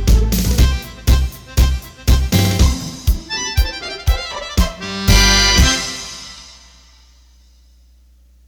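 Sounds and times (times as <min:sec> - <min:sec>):
tango music: 0:00.0 - 0:06.6.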